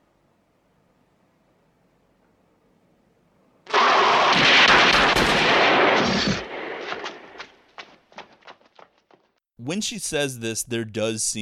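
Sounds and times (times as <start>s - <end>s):
police gunshots at a werewolf in a long alley in a film scene: 3.7s - 7.6s
speech: 9.7s - 11.4s.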